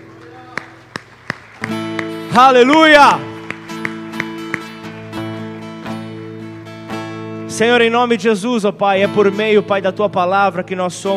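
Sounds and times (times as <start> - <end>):
audience clapping in unison: 0.0 - 6.0
speech: 2.4 - 3.3, 7.6 - 11.1.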